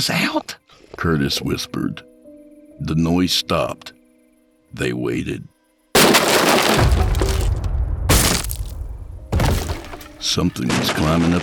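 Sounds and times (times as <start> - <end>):
speech: 0.0 - 2.1, 2.8 - 4.0, 4.7 - 5.5, 10.2 - 11.4
upstairs window glass shattering: 6.0 - 10.7.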